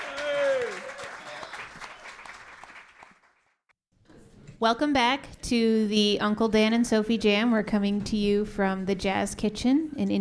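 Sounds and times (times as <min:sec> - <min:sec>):
audience applause for a pianist at the Jazz Kitchen jazz club in Indianapolis: 0:00.0 - 0:03.6
speech: 0:04.6 - 0:10.1.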